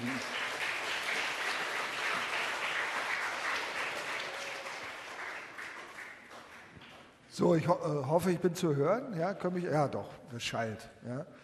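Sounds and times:
audience applause welcoming a speaker: 0.0 - 7.2
speech: 7.4 - 11.4.

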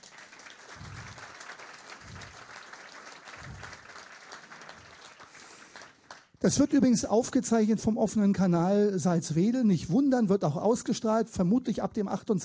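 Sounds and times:
audience clapping: 0.0 - 6.7
speech: 6.4 - 12.4.

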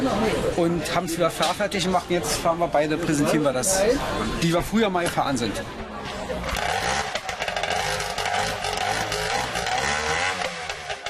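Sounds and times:
speech: 0.6 - 5.8
small engine idling and revving: 6.5 - 11.0.

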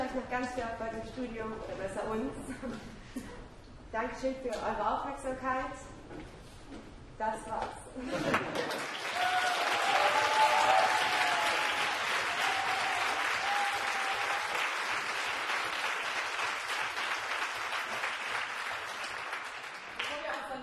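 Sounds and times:
speech: 0.1 - 3.3, 3.9 - 6.3, 7.2 - 9.5
audience applause: 8.3 - 20.4.

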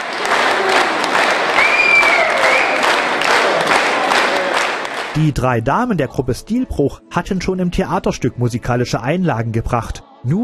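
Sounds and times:
audience applause: 0.0 - 5.3
speech: 5.2 - 10.4.

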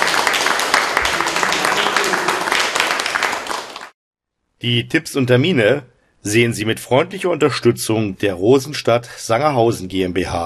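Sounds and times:
audience applause: 0.0 - 4.0
speech: 4.6 - 10.4.

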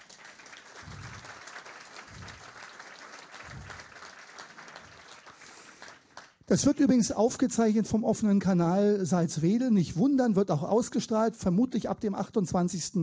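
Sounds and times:
audience applause: 0.0 - 6.4
speech: 6.5 - 13.0.

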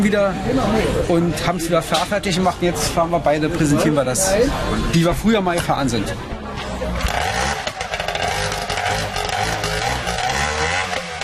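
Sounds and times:
speech: 0.0 - 6.3
racing boat engine starting up: 7.0 - 11.2.

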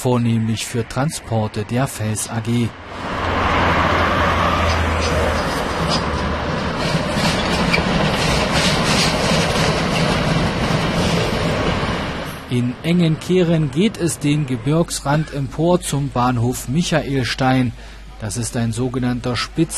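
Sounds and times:
speech: 0.0 - 3.2, 12.5 - 19.7
class 95 steam locomotive chugging past: 3.0 - 18.1.

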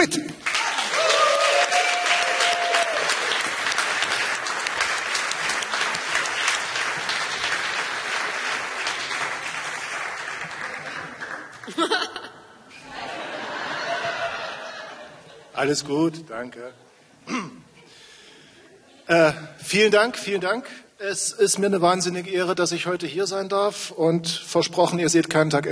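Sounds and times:
speech: 0.0 - 0.4, 15.6 - 16.9, 19.2 - 25.7
audience applause: 0.0 - 12.0
laughter: 10.8 - 15.6.

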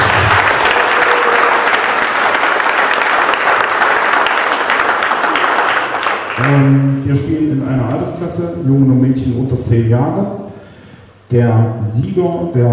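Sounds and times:
applause for children at a table tennis mini championship: 0.0 - 6.8
speech: 6.5 - 10.4, 11.3 - 12.7.

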